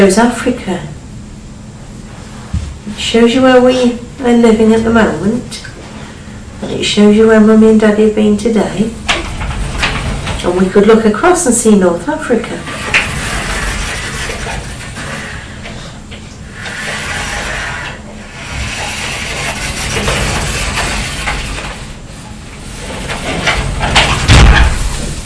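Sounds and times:
speech: 0.0s - 1.0s, 3.0s - 5.7s, 6.6s - 9.0s, 10.4s - 13.0s
doors opened and shut with sliding rattling mechanism: 7.6s - 25.2s
loud door thud: 23.5s - 25.2s.

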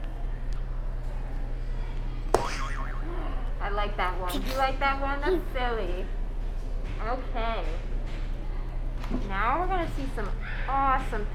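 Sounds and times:
steady low hum: 0.0s - 11.3s
buzzer boing sound effect: 2.4s - 3.1s
speech: 3.8s - 6.2s, 7.0s - 7.9s, 9.1s - 11.3s.

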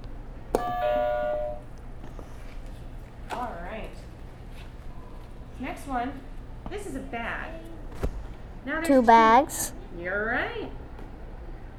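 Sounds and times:
buzzer: 0.6s - 1.7s
speech: 5.6s - 10.8s.

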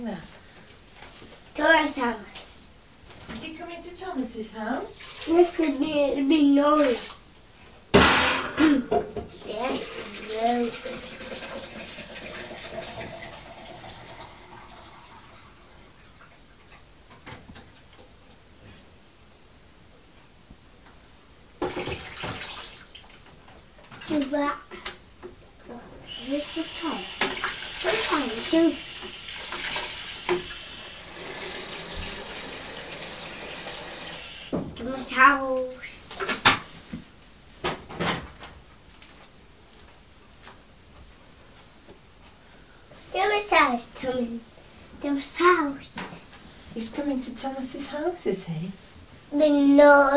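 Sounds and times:
speech: 0.0s - 0.4s, 1.2s - 2.4s, 3.3s - 7.1s, 8.9s - 11.2s, 47.4s - 50.1s
small child talking: 1.5s - 2.7s, 3.3s - 7.2s, 8.6s - 11.0s, 24.0s - 24.9s, 25.6s - 27.2s, 27.8s - 28.9s, 34.8s - 36.4s, 43.1s - 46.1s, 46.8s - 48.7s, 49.3s - 50.1s
water from a tap filling a kettle: 5.0s - 5.6s, 8.9s - 16.4s, 21.6s - 23.2s, 26.0s - 34.7s.

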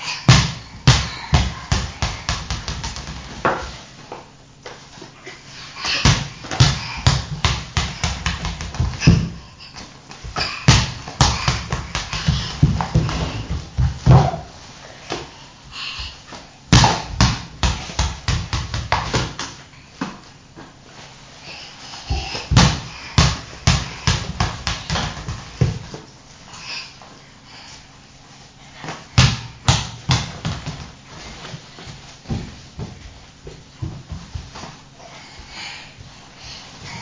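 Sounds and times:
ball bouncing during a child's play: 0.3s - 3.8s, 5.8s - 14.5s, 16.7s - 20.1s, 22.1s - 26.0s, 29.2s - 30.9s.

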